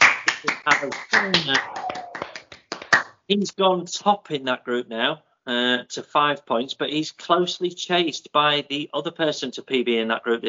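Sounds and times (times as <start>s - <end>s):
people clapping: 0.0s - 3.2s
speech: 0.4s - 1.8s, 3.3s - 10.4s
voices cheering and talking: 1.1s - 2.4s.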